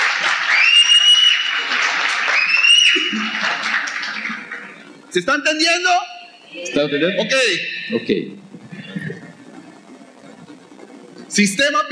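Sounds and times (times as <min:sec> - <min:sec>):
applause: 0:00.0 - 0:05.0
speech: 0:05.2 - 0:08.4, 0:11.4 - 0:11.9.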